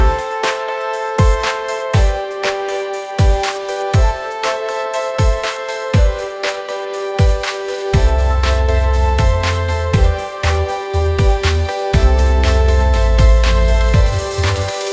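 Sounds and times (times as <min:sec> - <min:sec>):
pop music: 0:00.0 - 0:14.9.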